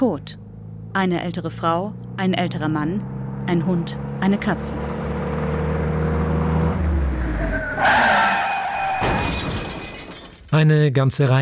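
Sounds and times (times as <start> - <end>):
speech: 0.0 - 5.0, 10.5 - 11.4
car engine droning: 0.0 - 9.0
car tires screeching in a skid with failed brakes: 5.6 - 9.3
car crashing: 7.7 - 10.5.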